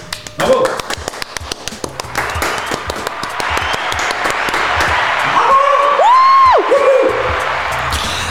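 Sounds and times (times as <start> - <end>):
crowd applause: 0.4 - 8.3
crowd whooping and cheering: 1.8 - 8.3.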